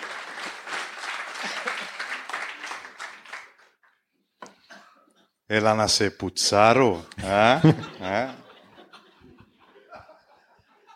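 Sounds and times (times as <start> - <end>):
audience applause: 0.0 - 3.8
laughter: 1.3 - 2.4, 7.1 - 10.9
speech: 5.5 - 8.4.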